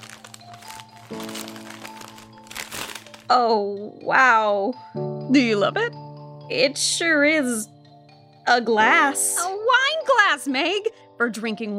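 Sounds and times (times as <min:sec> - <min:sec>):
wrapping paper being torn and pulled off a gift box: 0:00.0 - 0:03.4
speech: 0:03.3 - 0:07.8, 0:08.5 - 0:11.7.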